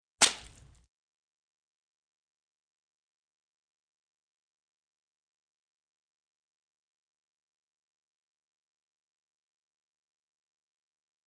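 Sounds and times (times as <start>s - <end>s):
fight sounds: 0.2s - 0.6s.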